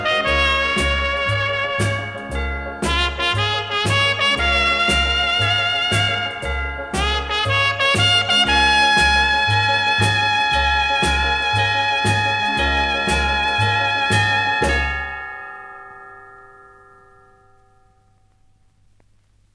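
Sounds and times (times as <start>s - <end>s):
orchestra playing: 0.0s - 15.4s.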